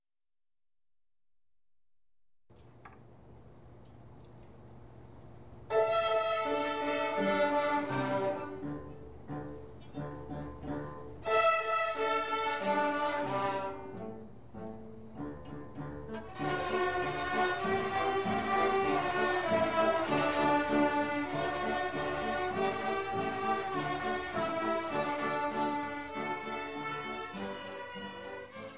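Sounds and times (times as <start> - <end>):
fiddle tune: 5.7 - 28.7.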